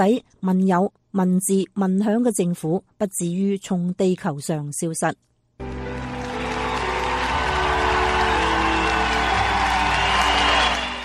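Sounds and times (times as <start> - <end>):
speech: 0.0 - 5.8
audience applauding warmly: 5.6 - 11.0.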